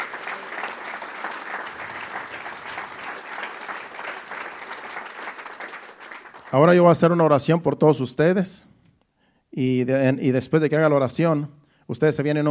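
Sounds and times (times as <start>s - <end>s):
audience applauding: 0.0s - 7.0s
speech: 6.5s - 8.7s, 9.6s - 12.4s.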